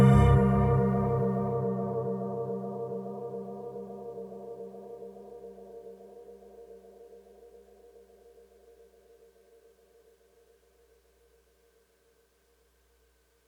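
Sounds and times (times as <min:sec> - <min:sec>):
bells: 0:00.0 - 0:02.9.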